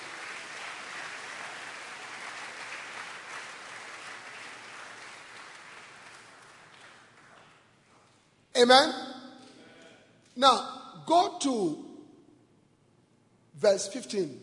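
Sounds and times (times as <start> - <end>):
church congregation applauding to welcome visiting apostles, bishops and church leaders: 0.0 - 8.0
speech: 8.6 - 9.0, 10.4 - 11.8, 13.6 - 14.4.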